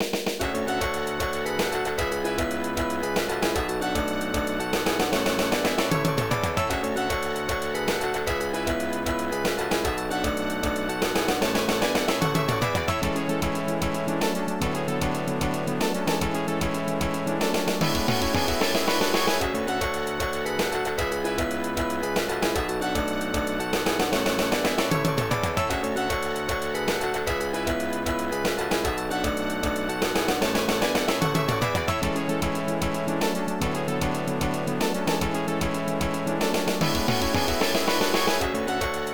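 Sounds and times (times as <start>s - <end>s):
victory march: 0.0s - 39.1s.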